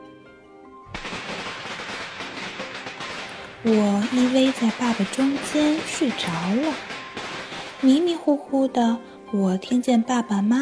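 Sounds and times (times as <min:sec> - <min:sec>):
firecrackers crackling: 0:00.9 - 0:09.2
speech: 0:03.6 - 0:06.9, 0:07.8 - 0:10.6.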